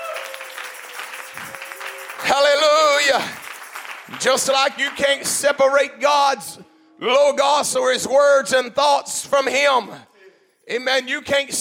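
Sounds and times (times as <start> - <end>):
audience clapping hands: 0.0 - 6.0
speech: 3.1 - 3.4, 4.1 - 10.1, 10.7 - 11.5.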